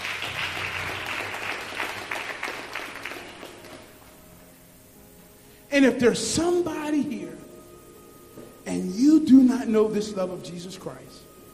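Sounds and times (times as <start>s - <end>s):
audience clapping hands: 0.0s - 4.2s
speech: 5.8s - 7.2s, 9.2s - 11.3s.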